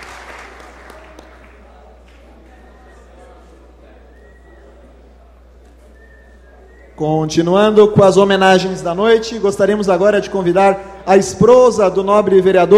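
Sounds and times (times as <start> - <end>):
audience applause: 0.0 - 2.5
speech: 7.0 - 12.7.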